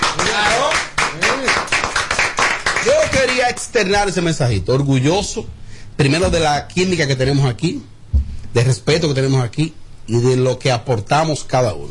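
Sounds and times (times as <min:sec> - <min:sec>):
people applauding in studio: 0:00.0 - 0:03.6
speech: 0:03.5 - 0:07.9, 0:08.5 - 0:11.8.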